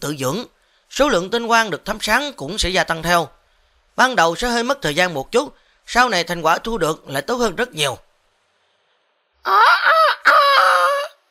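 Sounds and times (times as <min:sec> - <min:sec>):
speech: 0:00.0 - 0:03.4, 0:04.0 - 0:08.0, 0:09.4 - 0:10.7
rooster crowing at dawn: 0:09.4 - 0:11.2.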